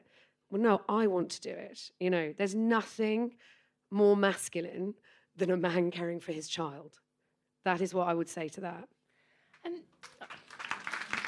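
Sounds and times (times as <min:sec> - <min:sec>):
speech: 0:00.5 - 0:07.0, 0:07.6 - 0:09.0
audience clapping: 0:10.0 - 0:11.2.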